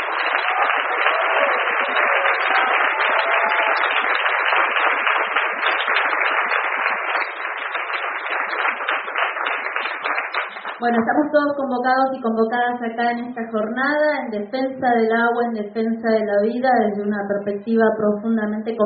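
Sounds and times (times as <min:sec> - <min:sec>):
audience applause: 0:00.0 - 0:10.8
speech: 0:10.8 - 0:18.8.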